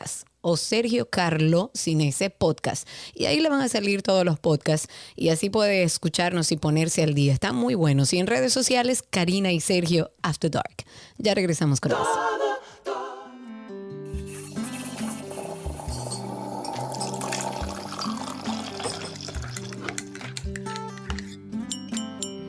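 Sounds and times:
speech: 0.4s - 12.4s
teaspoon stirring in a coffee cup: 14.2s - 22.4s.

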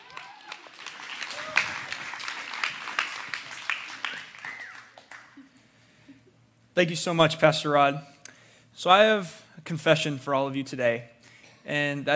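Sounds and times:
audience applause: 0.0s - 5.4s
speech: 6.8s - 8.1s, 8.8s - 12.1s.

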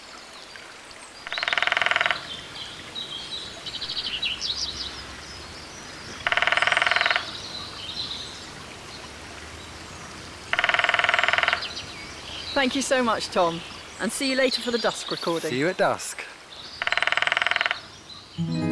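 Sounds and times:
lesser spotted woodpecker drumming: 1.2s - 2.6s, 3.8s - 7.8s, 10.0s - 15.5s, 16.6s - 17.9s
speech: 12.6s - 16.2s, 18.4s - 18.6s.

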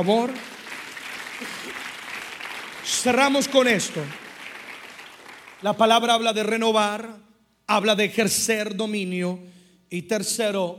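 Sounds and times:
speech: 0.0s - 0.5s, 2.9s - 4.2s, 5.6s - 10.7s
audience applauding loudly: 0.0s - 6.2s.

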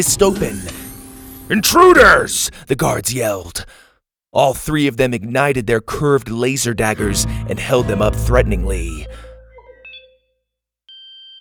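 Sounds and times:
speech: 0.0s - 0.8s, 1.5s - 3.8s, 4.4s - 9.2s
quiet electronic beep: 9.0s - 10.2s.

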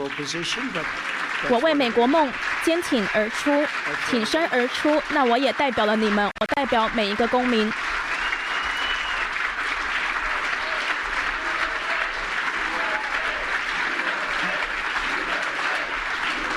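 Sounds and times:
speech: 0.0s - 7.9s
applause and cheering: 0.0s - 16.5s
large crowd chanting USA: 10.1s - 16.5s.

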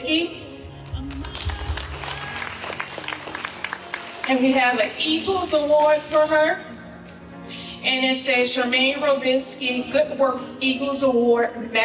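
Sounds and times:
speech: 0.0s - 0.4s, 4.3s - 6.7s, 7.8s - 11.8s
audience applause: 1.1s - 5.2s.

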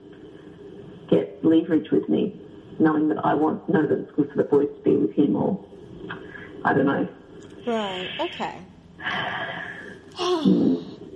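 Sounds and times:
speech: 1.1s - 10.9s
hum-like voiced tone: 10.2s - 11.0s.

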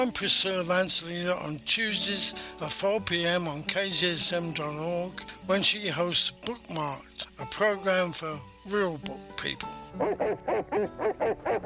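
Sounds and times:
speech: 0.0s - 11.6s
dog barking: 10.0s - 11.6s.

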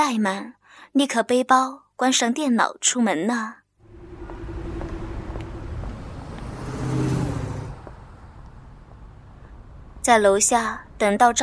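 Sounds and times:
speech: 0.1s - 3.6s, 10.0s - 11.4s
taxi engine driving off: 3.8s - 10.0s
broad road rumble: 3.8s - 11.4s.

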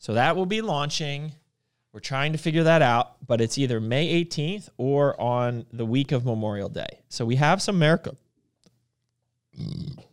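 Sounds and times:
speech: 0.0s - 1.4s, 2.0s - 8.2s, 9.6s - 10.1s
burp: 9.5s - 10.1s.

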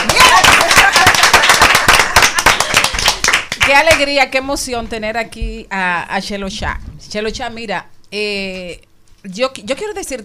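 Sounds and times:
crowd applause: 0.0s - 3.7s
speech: 3.8s - 10.2s.

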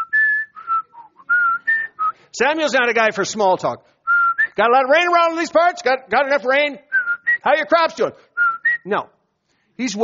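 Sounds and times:
person whistling a game show theme: 0.0s - 2.2s, 4.0s - 4.6s, 6.9s - 7.5s, 8.4s - 8.9s
speech: 2.4s - 4.0s, 4.6s - 9.1s, 9.8s - 10.0s.

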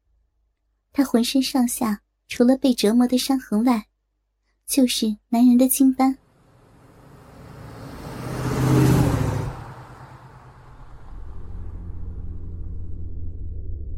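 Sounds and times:
speech: 1.0s - 3.9s, 4.7s - 6.2s
Mercedes 600 car driving in the dark: 6.2s - 13.9s.

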